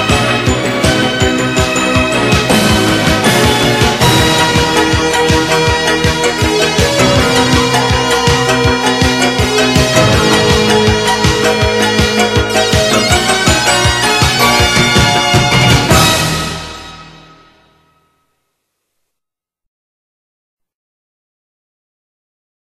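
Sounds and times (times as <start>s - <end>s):
baton music: 0.0s - 18.0s.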